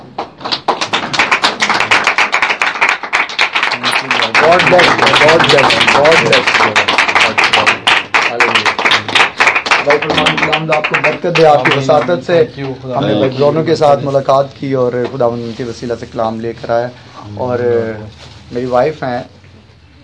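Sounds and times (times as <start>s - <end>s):
loud applause: 0.4s - 12.2s
speech: 4.5s - 6.8s, 9.8s - 19.4s.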